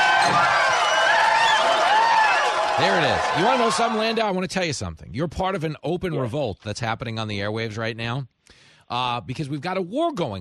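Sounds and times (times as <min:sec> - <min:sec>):
crowd cheering sound effect on radio show: 0:00.0 - 0:04.4
speech: 0:02.8 - 0:10.4.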